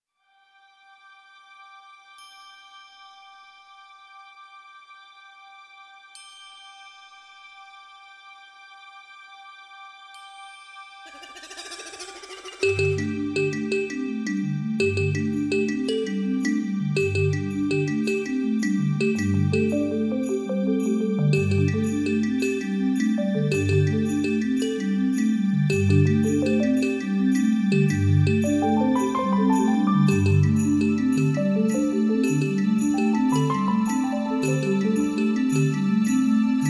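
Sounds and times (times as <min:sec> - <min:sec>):
kalimba in afro world music: 0:11.1 - 0:36.6.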